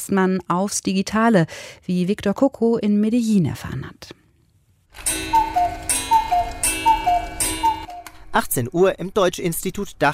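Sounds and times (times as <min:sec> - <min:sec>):
speech: 0:00.0 - 0:04.2, 0:08.4 - 0:10.1
two-note cuckoo clock call: 0:05.0 - 0:08.3
cuckoo clock ticking in a German language institute in Medellín: 0:05.0 - 0:08.4.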